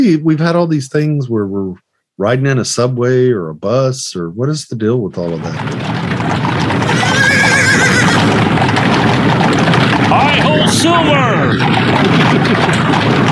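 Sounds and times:
speech: 0.0 - 7.9, 10.1 - 13.3
horse-drawn stagecoach rumbling and rattling: 5.2 - 13.3
horse neighing: 5.4 - 13.0.

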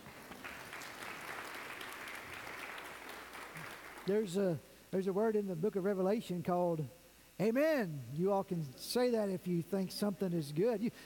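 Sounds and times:
audience clapping: 0.0 - 4.2
speech: 4.0 - 11.0.

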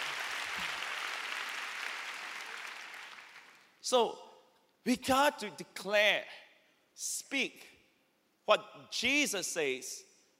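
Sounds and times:
crowd clapping: 0.0 - 3.8
speech: 3.9 - 4.2, 4.8 - 6.4, 7.0 - 7.7, 8.5 - 10.1.

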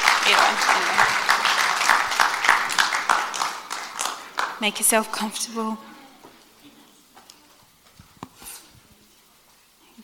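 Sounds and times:
round of applause: 0.0 - 4.8
speech: 0.3 - 1.2, 4.6 - 5.9.

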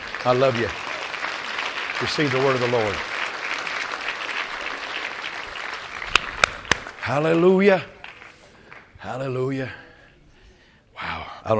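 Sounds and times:
audience clapping: 0.0 - 9.0
speech: 0.2 - 0.8, 2.0 - 3.1, 7.1 - 7.9, 9.0 - 9.8.

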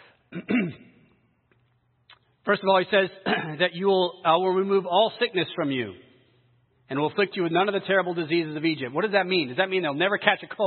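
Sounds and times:
speech: 0.3 - 0.9, 2.5 - 6.0, 6.9 - 10.6
person clearing throat: 0.3 - 1.1, 3.2 - 3.6.

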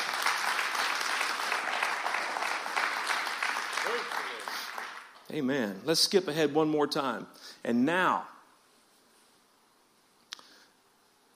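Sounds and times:
crowd clapping hands: 0.0 - 5.3
speech: 5.3 - 8.4.

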